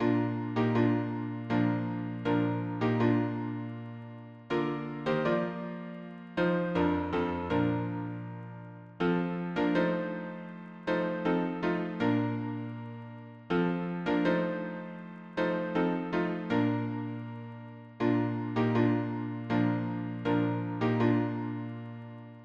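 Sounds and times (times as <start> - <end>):
piano harmony: 0.0 - 22.4.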